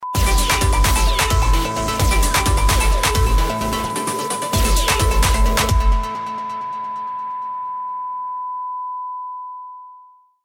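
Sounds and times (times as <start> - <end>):
jingle: 0.2 - 8.2.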